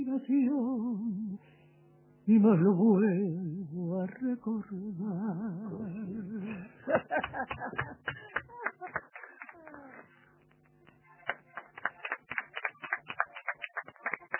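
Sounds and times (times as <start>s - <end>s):
speech: 0.2s - 1.1s, 2.3s - 8.3s
laughter: 6.4s - 10.0s
audience applause: 7.2s - 10.2s, 11.2s - 14.3s.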